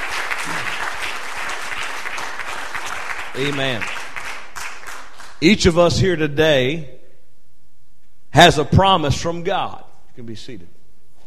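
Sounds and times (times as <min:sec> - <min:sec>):
crowd audience clapping hands: 0:00.0 - 0:05.8
speech: 0:03.4 - 0:04.0, 0:05.4 - 0:07.0, 0:08.4 - 0:10.8.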